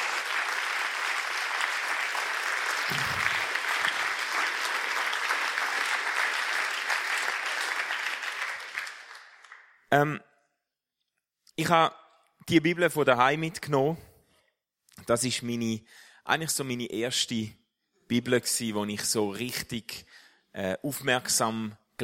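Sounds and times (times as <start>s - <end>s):
audience applause: 0.0s - 9.8s
speech: 9.9s - 10.3s, 11.6s - 14.1s, 15.0s - 22.0s.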